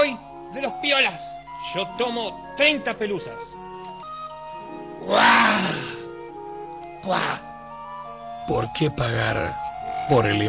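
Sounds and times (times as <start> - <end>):
speech: 0.2 - 3.6, 5.0 - 6.0, 7.0 - 7.5, 8.5 - 10.4
lion roar: 5.0 - 6.1.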